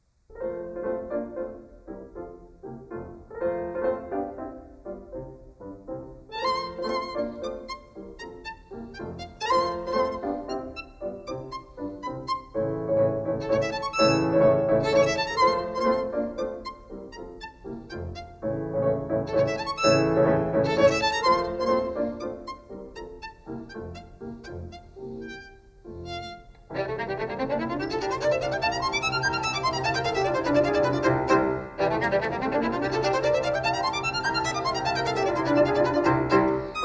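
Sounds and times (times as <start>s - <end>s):
violin sonata in F major: 0.3s - 36.8s.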